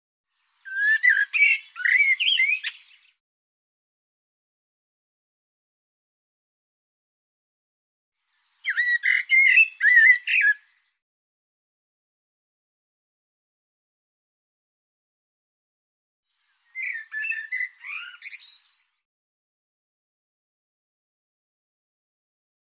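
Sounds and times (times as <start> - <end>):
bird song: 0.4 - 3.2, 8.3 - 11.0, 16.3 - 19.0.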